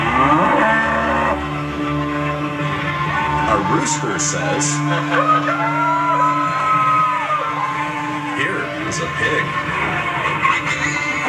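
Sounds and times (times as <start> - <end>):
cow mooing: 0.0 - 7.1
laughter: 2.9 - 11.2
speech: 3.7 - 6.2, 8.9 - 10.4.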